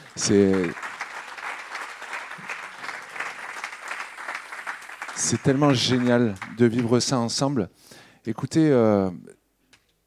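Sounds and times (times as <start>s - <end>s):
audience applause: 0.0s - 7.2s
speech: 0.2s - 0.8s, 5.3s - 9.4s.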